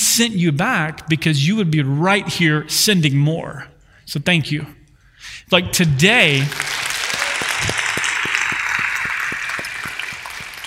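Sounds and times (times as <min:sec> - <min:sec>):
speech: 0:00.2 - 0:06.7
audience applause: 0:06.3 - 0:10.6.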